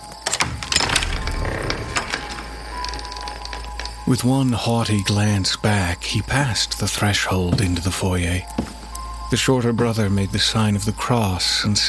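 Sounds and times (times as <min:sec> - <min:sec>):
wooden door creaking open: 0:00.0 - 0:05.2
speech: 0:04.1 - 0:11.8.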